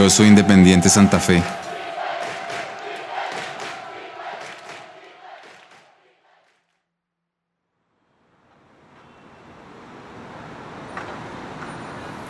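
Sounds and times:
speech: 0.0s - 1.8s
city road traffic: 8.4s - 12.2s.

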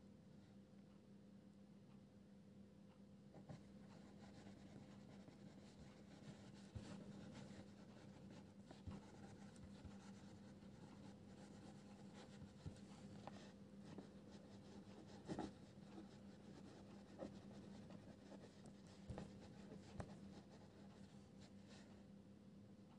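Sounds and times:
steady low hum: 0.0s - 22.9s
pencil scratching and scribbling across paper: 3.5s - 21.8s.

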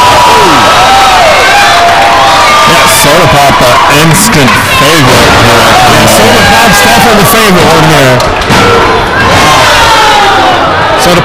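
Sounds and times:
wrestling crowd cheering at Combat One: 0.0s - 11.2s
laughter: 2.7s - 8.2s
speech: 4.0s - 9.4s, 11.0s - 11.2s.

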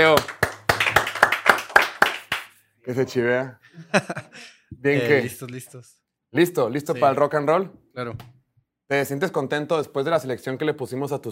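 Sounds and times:
speech: 0.0s - 0.3s, 2.9s - 8.3s, 8.9s - 11.2s
hand clapping: 0.0s - 2.6s
laughter: 3.7s - 4.6s.

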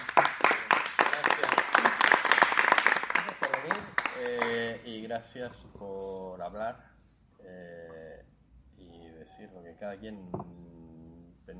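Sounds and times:
group applause: 0.0s - 4.8s
speech: 5.1s - 7.7s, 9.4s - 10.7s.

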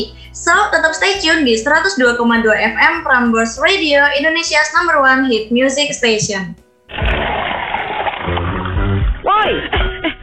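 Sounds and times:
speech: 0.0s - 7.0s
water poured into a soap container: 6.9s - 9.2s.

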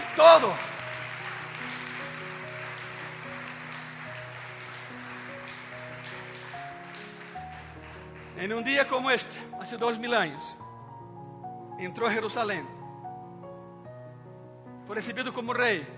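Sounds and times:
large audience applauding: 0.0s - 9.3s
speech: 0.2s - 0.7s, 8.4s - 10.6s, 11.8s - 12.8s, 14.9s - 15.9s.

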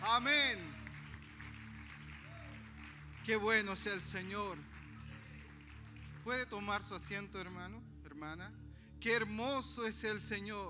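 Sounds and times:
loud audience applause: 0.0s - 6.4s
speech: 0.2s - 0.7s, 3.2s - 4.7s, 6.3s - 10.6s.

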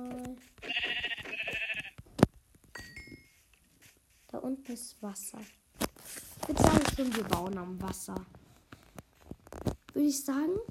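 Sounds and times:
sheep bleating: 0.6s - 2.0s
speech: 4.7s - 5.6s, 6.5s - 8.4s, 10.0s - 10.7s.

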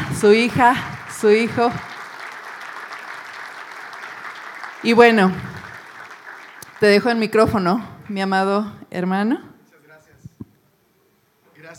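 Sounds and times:
audience applause: 0.0s - 8.2s
speech: 0.2s - 1.9s, 4.8s - 5.5s, 6.8s - 9.5s.

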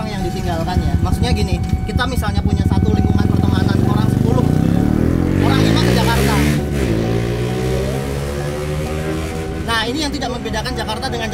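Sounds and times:
motorcycle with a racing exhaust droning: 0.0s - 11.3s
speech: 0.4s - 3.8s, 10.0s - 11.3s.

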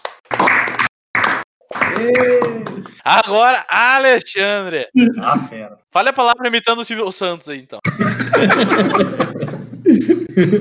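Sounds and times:
hand clapping: 0.0s - 3.0s
person cheering or hooting: 1.8s - 3.5s
speech: 2.0s - 10.6s
laughter: 7.8s - 10.6s.

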